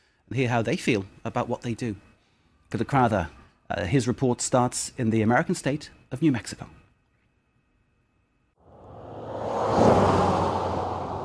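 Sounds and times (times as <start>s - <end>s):
speech: 0.3s - 2.1s, 2.7s - 6.8s
Predator drone engine whirring: 8.7s - 11.2s.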